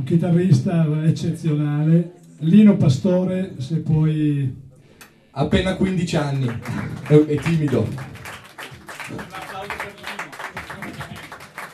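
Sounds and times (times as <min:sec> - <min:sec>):
speech: 0:00.0 - 0:04.6, 0:05.4 - 0:08.2
audience applause: 0:06.1 - 0:11.7.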